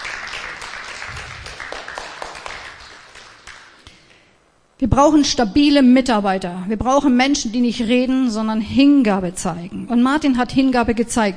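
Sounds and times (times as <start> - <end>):
room full of people applauding: 0.0 - 3.8
speech: 4.8 - 11.3.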